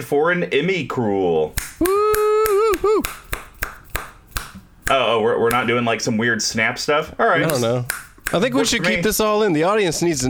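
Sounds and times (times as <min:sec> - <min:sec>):
speech: 0:00.0 - 0:01.6, 0:05.0 - 0:10.2
hands clapping: 0:01.5 - 0:05.7, 0:07.4 - 0:08.7.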